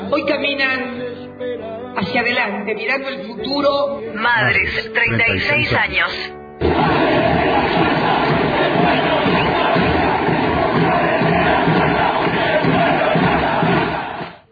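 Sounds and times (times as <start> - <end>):
speech: 0.1 - 7.2
crowd chanting in unison at a rally: 6.6 - 14.4.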